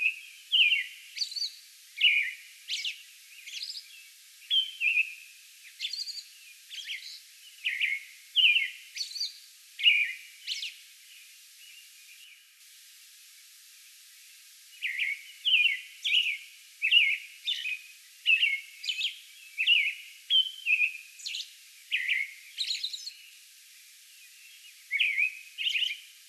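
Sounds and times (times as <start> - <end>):
American robin song: 0.0 - 12.4, 14.7 - 23.4, 24.2 - 26.2.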